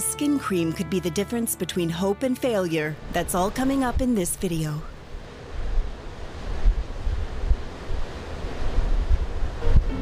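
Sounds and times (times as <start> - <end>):
sea waves on the Baltic coast: 0.0 - 9.9
speech: 0.2 - 4.9
gusty wind buffeting the microphone: 5.1 - 9.9.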